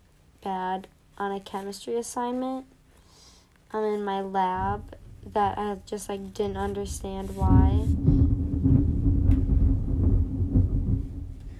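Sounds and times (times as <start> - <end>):
speech: 0.4 - 2.8, 3.7 - 8.0
thunder: 6.6 - 11.5.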